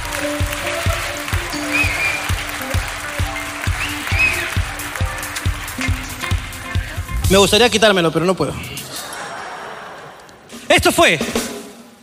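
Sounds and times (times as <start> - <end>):
audience applause: 0.0 - 7.2
speech: 7.3 - 8.9, 10.8 - 11.4
laughter: 8.6 - 10.6.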